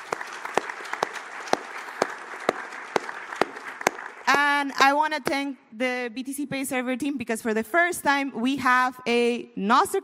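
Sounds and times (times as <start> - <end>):
audience applause: 0.0 - 4.5
speech: 4.6 - 10.0.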